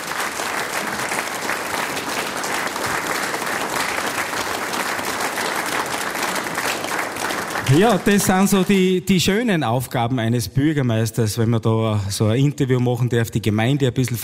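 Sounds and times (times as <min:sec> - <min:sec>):
audience applause: 0:00.0 - 0:09.0
speech: 0:07.7 - 0:14.2.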